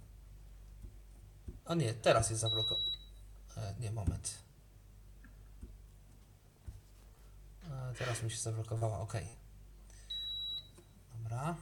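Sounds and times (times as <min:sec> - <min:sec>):
low steady hum: 0:00.0 - 0:11.5
speech: 0:01.7 - 0:02.9, 0:03.6 - 0:04.5, 0:07.9 - 0:09.4, 0:11.2 - 0:11.5
electric stove high-pitched electronic beep: 0:02.5 - 0:03.2, 0:10.0 - 0:11.0.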